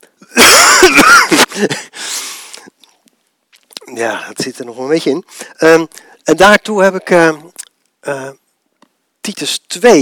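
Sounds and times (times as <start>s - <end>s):
person coughing: 0.4s - 1.9s
speech: 1.6s - 1.9s, 4.0s - 8.4s, 9.2s - 10.0s.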